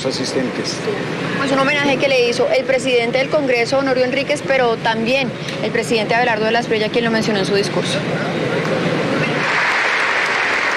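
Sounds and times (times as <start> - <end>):
speech: 0.0 - 8.9
crowd applause and ovation at a presidential inauguration: 9.3 - 10.7.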